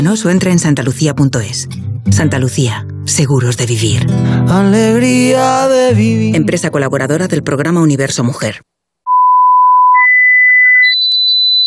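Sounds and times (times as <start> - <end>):
speech: 0.0 - 8.7
loud electronic beeps climbing in pitch: 9.1 - 11.6.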